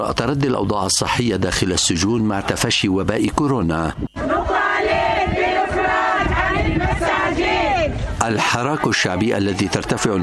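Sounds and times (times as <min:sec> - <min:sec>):
speech: 0:00.0 - 0:04.1, 0:08.2 - 0:10.2
protest crowd chanting slogans: 0:04.2 - 0:10.2.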